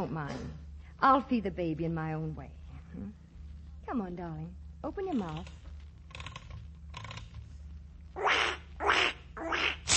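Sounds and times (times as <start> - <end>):
speech: 0.0 - 3.2, 3.9 - 5.6
low constant hum: 0.0 - 9.9
squeezed rubber toy duck quacking: 8.2 - 9.9.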